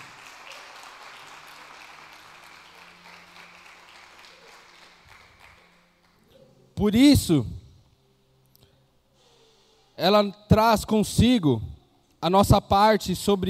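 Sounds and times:
audience applause: 0.0s - 5.8s
speech: 6.8s - 7.6s, 10.0s - 13.4s.

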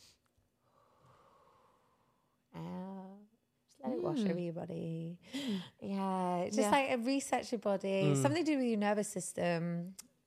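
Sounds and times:
deep breath in during a relaxation breathing exercise: 0.6s - 2.2s, 5.3s - 5.8s
speech: 4.0s - 10.1s.

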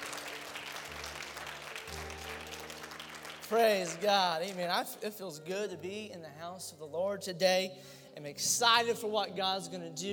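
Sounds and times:
audience clapping hands: 0.0s - 4.9s
speech: 3.5s - 10.1s.

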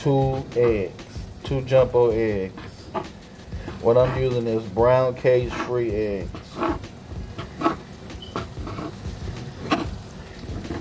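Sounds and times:
speech: 0.0s - 3.2s, 3.8s - 6.9s
knife chopping turkey bacon: 1.8s - 10.0s.

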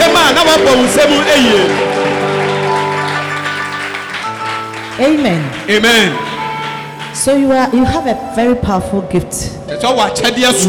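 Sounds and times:
audience clapping: 0.0s - 7.9s
speech: 0.6s - 2.0s, 5.0s - 6.3s, 7.2s - 10.6s.

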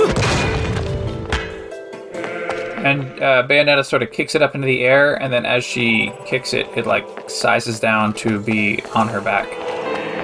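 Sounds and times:
heavy crashing whacks of a giant axe picked up in Bayonetta: 0.0s - 1.6s
speech: 2.8s - 9.8s.

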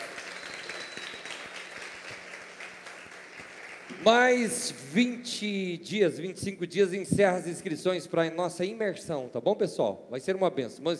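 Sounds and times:
crowd applauding: 0.0s - 4.5s
speech: 4.0s - 10.9s.

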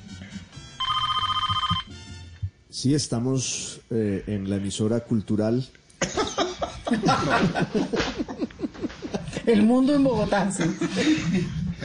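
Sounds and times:
telephone ringing with an electronic trill: 0.8s - 1.9s
speech: 2.8s - 5.8s, 6.9s - 8.2s, 9.5s - 11.6s
laughter: 6.0s - 9.6s, 10.5s - 11.8s.

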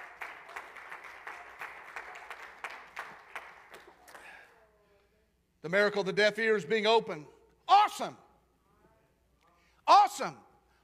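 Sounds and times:
audience clapping hands: 0.0s - 4.5s
speech: 5.6s - 7.4s, 8.0s - 8.2s, 10.2s - 10.5s.

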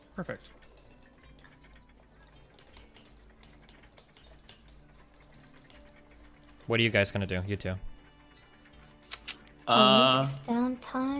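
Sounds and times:
speech: 0.2s - 0.7s, 6.7s - 7.9s, 9.7s - 11.1s
typing on a computer keyboard: 0.6s - 7.2s.

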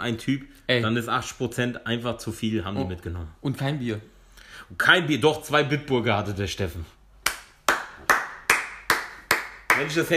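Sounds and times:
speech: 0.0s - 7.0s, 9.8s - 10.1s
hand clapping: 7.2s - 10.1s.

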